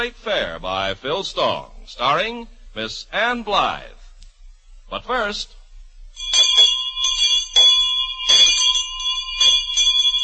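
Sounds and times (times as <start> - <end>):
speech: 0.0 - 4.0, 4.9 - 5.6
bell ringing: 6.2 - 10.2.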